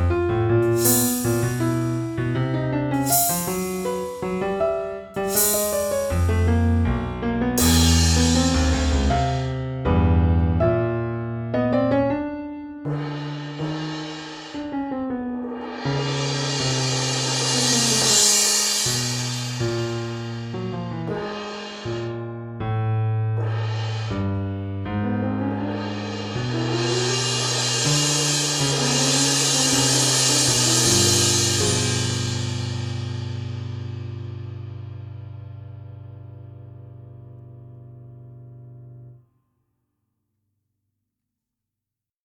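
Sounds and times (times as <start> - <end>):
cymbal: 0.0 - 6.6, 7.6 - 9.6, 12.9 - 22.3, 23.4 - 34.9
piano: 0.0 - 39.2.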